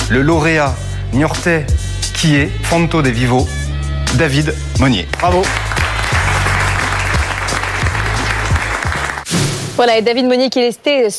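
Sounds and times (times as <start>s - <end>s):
speech: 0.1s - 5.7s, 9.8s - 11.1s
audience applause: 5.2s - 9.3s.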